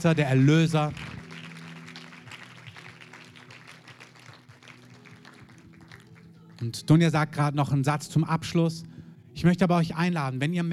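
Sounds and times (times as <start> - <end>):
speech: 0.0 - 1.0, 6.6 - 10.7
audience applause: 0.3 - 6.3.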